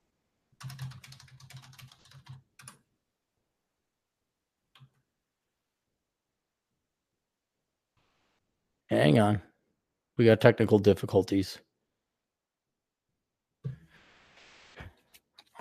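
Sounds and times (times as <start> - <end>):
rapid keyboard typing: 0.6 - 2.8
speech: 8.9 - 9.5, 10.2 - 11.7.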